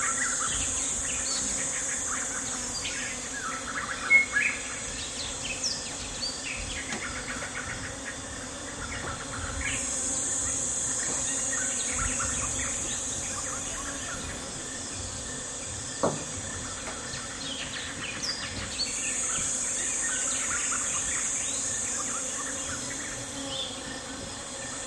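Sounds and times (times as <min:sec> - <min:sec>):
insects and bees humming at a jungle camp in Ivindo NP Gabon: 0:00.0 - 0:24.8
sharp knocks: 0:16.0 - 0:17.0.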